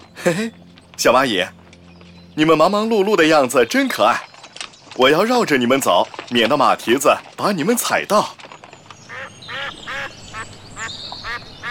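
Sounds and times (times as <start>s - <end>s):
speech: 0.2s - 1.6s, 2.4s - 4.3s, 5.0s - 8.4s
ducks quacking: 9.1s - 11.6s.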